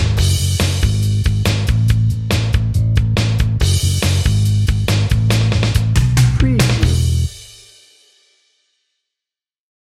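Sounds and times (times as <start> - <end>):
optimistic pop rock drum and bass music: 0.0 - 7.7.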